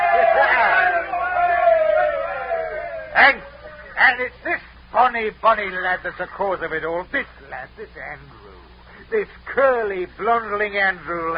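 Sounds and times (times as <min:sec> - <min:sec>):
group of sailors cheering: 0:00.0 - 0:04.0
speech: 0:04.2 - 0:11.3.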